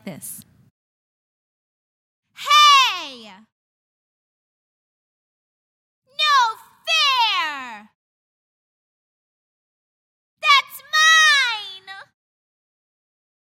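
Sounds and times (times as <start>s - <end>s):
spoiled three-year-old child: 2.4s - 3.5s, 6.1s - 8.0s, 10.4s - 12.1s.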